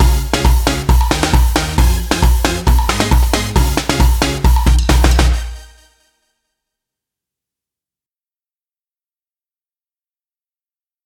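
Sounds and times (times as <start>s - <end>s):
soca pop music: 0.0s - 5.8s
percussion beats: 0.0s - 5.9s.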